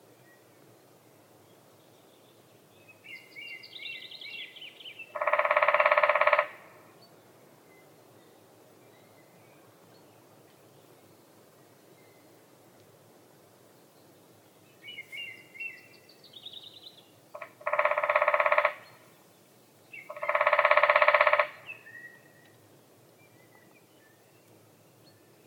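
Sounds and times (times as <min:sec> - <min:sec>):
lesser spotted woodpecker Dendrocopos minor calling: 0:05.1 - 0:06.6, 0:17.3 - 0:19.0, 0:20.0 - 0:22.2.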